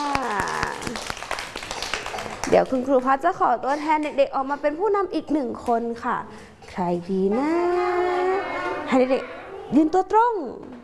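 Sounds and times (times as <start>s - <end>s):
children clapping: 0.0s - 3.1s
speech: 2.5s - 8.2s, 8.9s - 10.8s.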